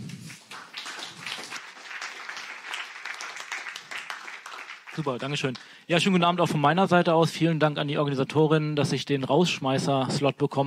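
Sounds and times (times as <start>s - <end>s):
audience applause: 0.4s - 5.7s
speech: 5.0s - 10.6s.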